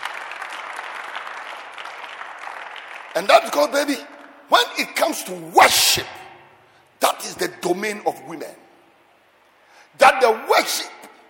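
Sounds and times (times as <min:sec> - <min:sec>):
audience clapping: 0:00.0 - 0:04.5
speech: 0:03.2 - 0:06.2, 0:07.0 - 0:08.6, 0:10.0 - 0:11.0.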